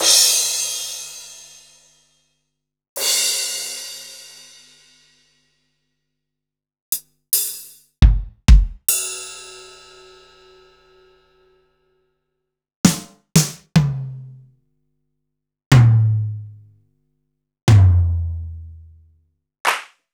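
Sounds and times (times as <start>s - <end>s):
Akai MPC500 fusion drum kit: 7.4s - 9.0s, 12.9s - 14.4s, 15.7s - 16.6s, 17.7s - 18.8s.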